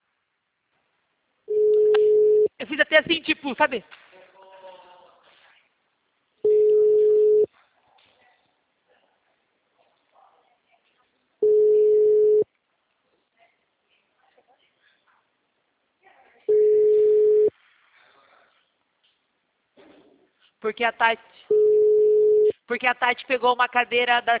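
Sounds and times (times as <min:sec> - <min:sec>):
ringback tone of an unanswered telephone call: 0:01.5 - 0:02.5, 0:06.4 - 0:07.5, 0:11.4 - 0:12.4, 0:16.5 - 0:17.5, 0:21.5 - 0:22.5
speech: 0:02.9 - 0:04.0, 0:20.7 - 0:21.6, 0:22.7 - 0:24.3.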